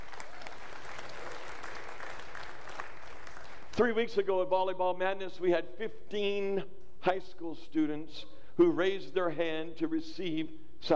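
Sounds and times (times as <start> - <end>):
audience applause: 0.0 - 3.7
speech: 3.8 - 10.9.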